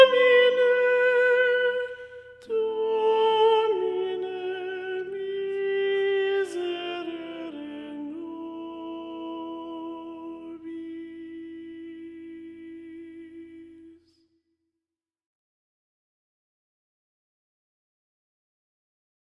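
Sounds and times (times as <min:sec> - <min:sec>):
choir singing a sacred piece: 0:00.0 - 0:13.9.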